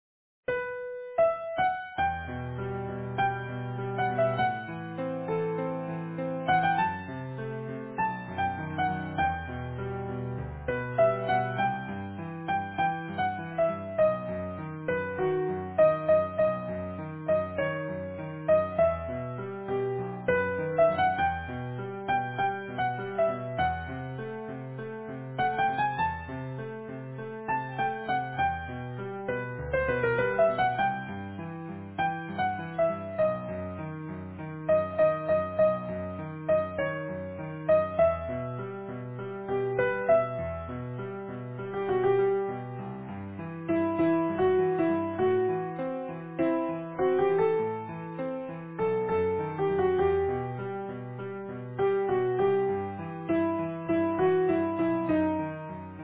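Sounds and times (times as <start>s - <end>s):
easy piano: 0.5s - 56.0s.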